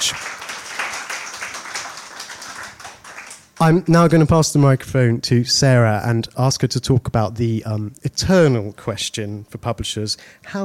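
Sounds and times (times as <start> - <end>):
audience applause: 0.0 - 3.5
speech: 3.6 - 10.6.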